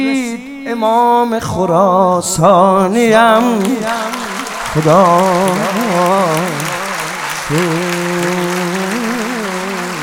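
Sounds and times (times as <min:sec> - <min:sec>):
speech: 0:00.0 - 0:06.7, 0:07.5 - 0:08.0
man chanting: 0:00.0 - 0:10.0
crowd clapping for Imam Reza at a religious gathering: 0:03.1 - 0:10.0.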